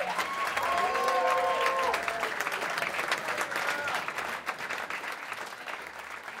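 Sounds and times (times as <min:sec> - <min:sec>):
audience applauding enthusiastically: 0:00.0 - 0:06.3.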